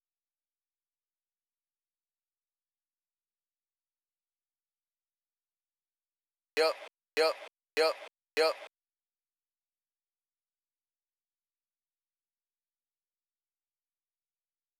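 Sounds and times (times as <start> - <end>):
100 bpm vocal sample: 6.6 - 8.7.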